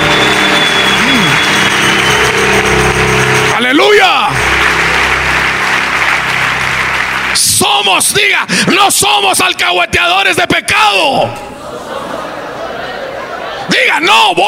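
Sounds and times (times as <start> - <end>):
audience applause: 0.0 - 8.8
speech: 8.0 - 11.6, 13.8 - 14.4
laughter: 11.5 - 13.8.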